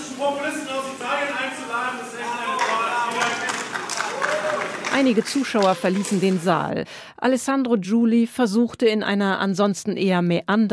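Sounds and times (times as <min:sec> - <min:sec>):
speech: 0:00.2 - 0:02.5, 0:05.0 - 0:10.7
scattered clapping: 0:02.5 - 0:06.5
audience shouting and jeering in protest: 0:02.9 - 0:04.9.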